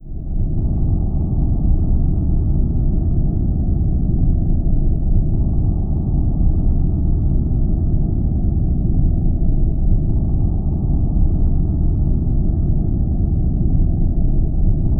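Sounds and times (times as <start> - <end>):
rumble: 0.0 - 14.9.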